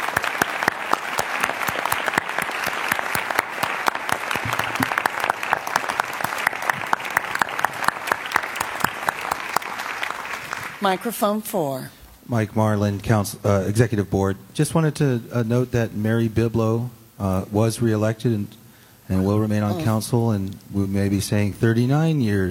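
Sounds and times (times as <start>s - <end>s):
audience applause: 0.0s - 11.0s
speech: 10.8s - 22.5s.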